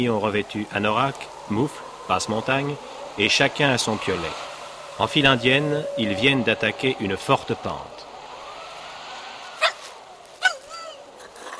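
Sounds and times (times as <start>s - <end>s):
speech: 0.0s - 7.9s
dog whining: 9.6s - 11.5s.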